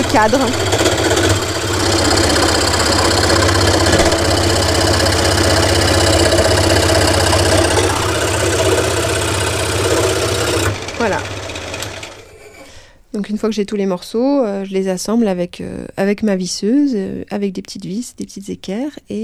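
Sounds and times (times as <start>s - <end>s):
low humming undertone: 0.0s - 11.6s
motorized saw cutting wooden pieces: 0.0s - 12.8s
speech: 0.2s - 0.7s, 13.2s - 19.2s.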